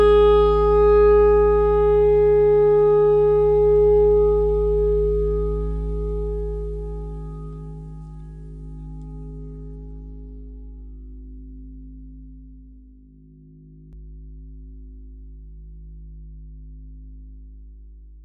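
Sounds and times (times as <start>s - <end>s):
simple clarinet notes: 0.0s - 9.9s.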